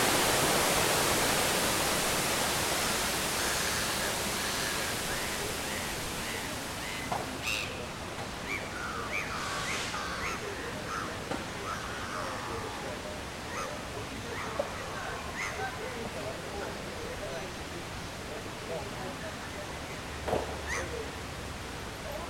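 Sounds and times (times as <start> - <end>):
park soundscape: 0.0 - 22.2.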